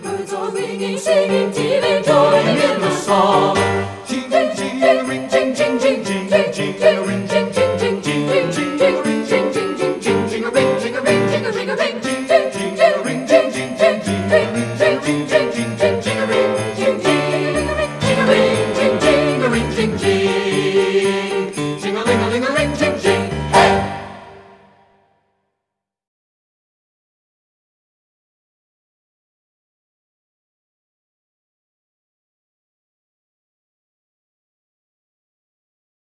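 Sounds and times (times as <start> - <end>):
full soprano alto tenor bass choir singing: 0.0 - 24.9.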